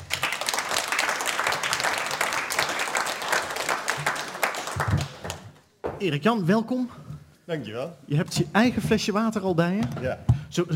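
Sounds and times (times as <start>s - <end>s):
audience applause: 0.0s - 5.6s
speech: 6.0s - 10.7s.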